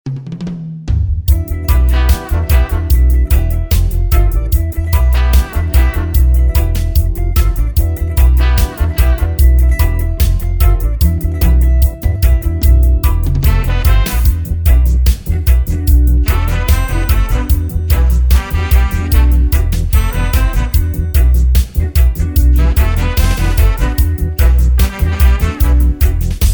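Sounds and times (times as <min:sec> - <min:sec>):
instrumental jazz mix: 0:01.2 - 0:26.5.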